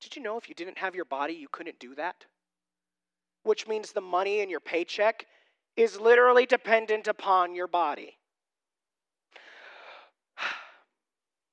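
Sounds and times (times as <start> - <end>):
speech: 0.2 - 2.4, 3.4 - 8.2
person taking a breath: 9.3 - 10.9.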